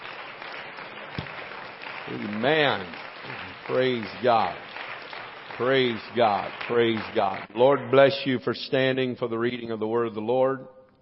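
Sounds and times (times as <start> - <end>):
audience clapping hands: 0.0 - 7.8
speech: 2.1 - 4.8, 5.6 - 10.8.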